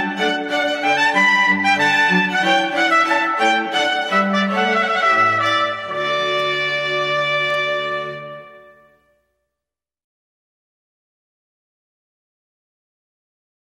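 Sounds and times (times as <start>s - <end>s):
string ensemble playing music: 0.0s - 9.1s.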